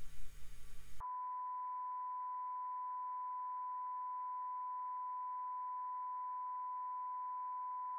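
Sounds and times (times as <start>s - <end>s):
sine calibration tone: 0.0s - 7.9s.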